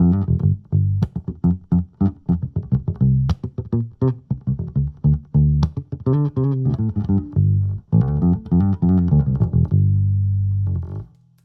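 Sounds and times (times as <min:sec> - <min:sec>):
fingerstyle guitar: 0:00.0 - 0:11.2.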